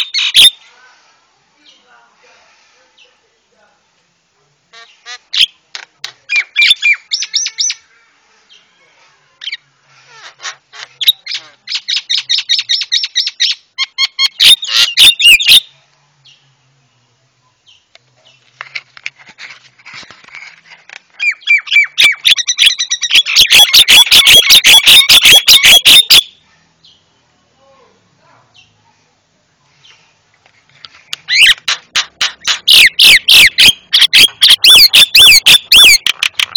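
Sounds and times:
Javan myna chattering and whistling song: 0.0s - 0.6s, 9.4s - 15.7s, 21.2s - 26.4s, 31.2s - 36.5s.

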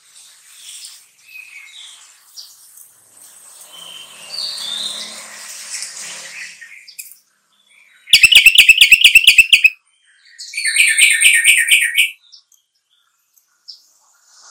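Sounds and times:
sooty-headed bulbul singing: 8.1s - 9.8s, 10.4s - 12.4s.

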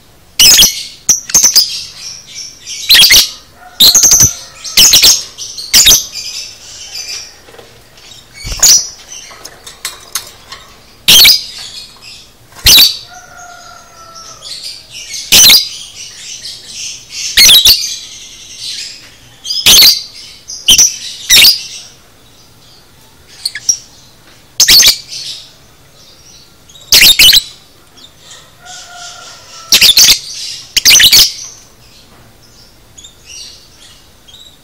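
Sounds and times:
lovebird squawking chirps: 0.4s - 1.8s, 2.7s - 7.2s, 11.1s - 11.6s, 12.6s - 13.1s, 15.2s - 15.8s, 17.2s - 18.0s, 19.5s - 21.7s, 23.4s - 23.8s, 24.6s - 25.1s, 26.8s - 27.6s, 28.7s - 31.5s.

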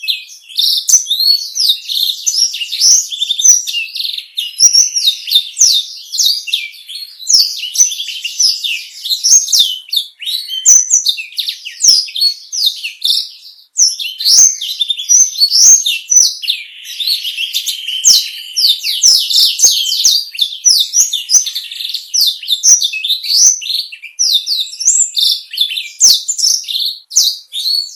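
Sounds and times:
black-throated canary singing a rapid continuous warble: 0.0s - 27.9s.

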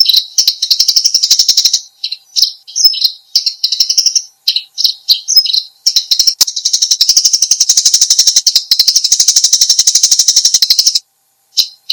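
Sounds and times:
Eurasian tree sparrow chattering: 0.0s - 11.0s, 11.6s - 11.9s.

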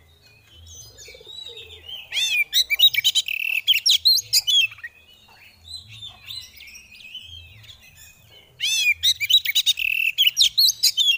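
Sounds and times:
Oriental magpie-robin chattering: 1.0s - 4.9s, 8.6s - 11.1s.

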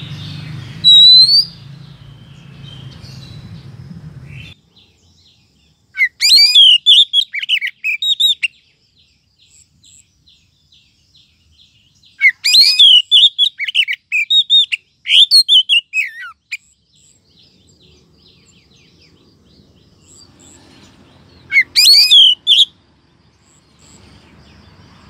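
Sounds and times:
Oriental magpie-robin rising whistle: 0.8s - 1.6s, 6.0s - 8.5s, 12.2s - 16.4s, 21.5s - 22.8s.

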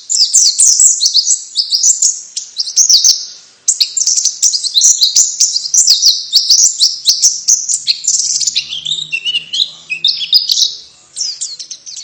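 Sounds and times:
white-eye twittering: 0.0s - 12.0s.

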